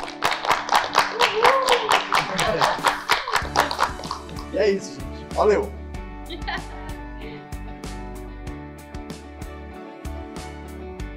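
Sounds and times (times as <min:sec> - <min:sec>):
audience applause: 0:00.0 - 0:04.5
laughter: 0:02.0 - 0:04.1, 0:06.3 - 0:07.0
speech: 0:04.6 - 0:06.8.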